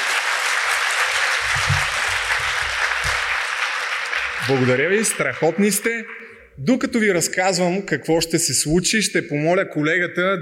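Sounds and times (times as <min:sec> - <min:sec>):
audience applause: 0:00.0 - 0:06.0
speech: 0:04.5 - 0:10.3.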